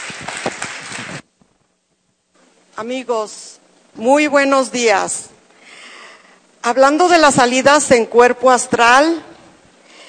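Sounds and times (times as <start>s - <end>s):
audience applause: 0.0s - 1.2s
speech: 2.8s - 5.3s, 6.6s - 9.3s.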